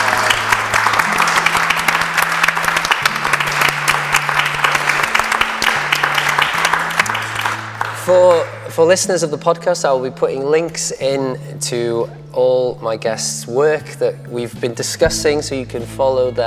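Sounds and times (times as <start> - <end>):
audience clapping: 0.0 - 8.7
low sustained bass notes: 7.0 - 16.4
speech: 8.1 - 16.4.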